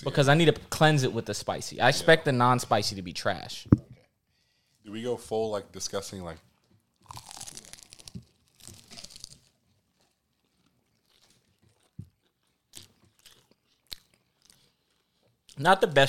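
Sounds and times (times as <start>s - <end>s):
speech: 0.0s - 3.8s, 4.8s - 6.5s, 15.6s - 16.0s
crisp chewing: 6.5s - 15.6s
crunchy bite into fried chicken: 6.9s - 15.6s.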